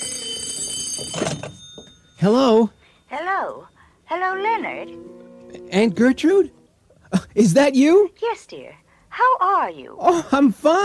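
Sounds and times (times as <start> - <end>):
telephone ringing with a shrill bell: 0.0 - 6.7
speech: 2.2 - 5.1, 5.7 - 6.6, 7.4 - 10.8.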